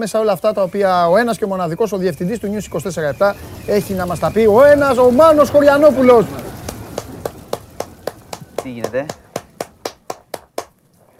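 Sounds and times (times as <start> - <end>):
speech: 0.0 - 6.5, 8.7 - 9.2
hand clapping: 6.6 - 10.8.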